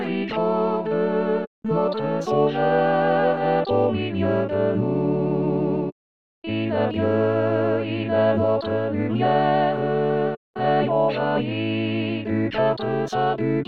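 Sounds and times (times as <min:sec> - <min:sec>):
choir of four voices: 0:00.0 - 0:13.6.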